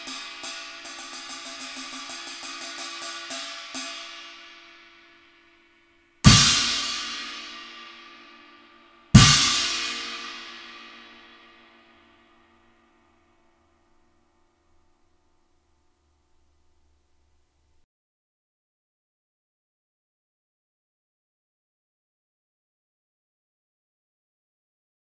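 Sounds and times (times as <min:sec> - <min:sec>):
china cymbal: 0:00.0 - 0:13.3.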